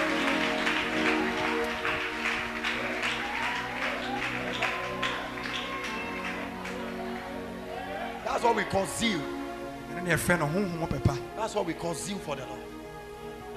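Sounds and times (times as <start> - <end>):
audience clapping: 0.0 - 9.2
speech: 8.4 - 9.4, 10.0 - 12.7.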